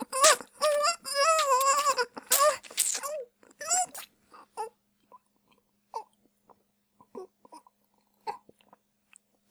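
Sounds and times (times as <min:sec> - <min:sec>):
swallowing: 0:00.2 - 0:04.1.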